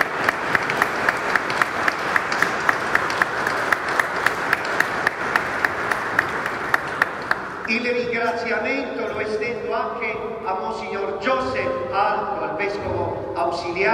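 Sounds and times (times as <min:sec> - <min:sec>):
audience applause: 0:00.0 - 0:07.8
speech: 0:07.7 - 0:13.9.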